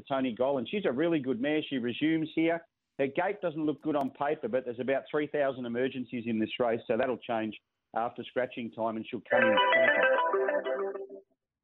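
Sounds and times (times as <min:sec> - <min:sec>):
speech: 0:00.0 - 0:11.2
mobile phone ringtone: 0:09.3 - 0:11.2.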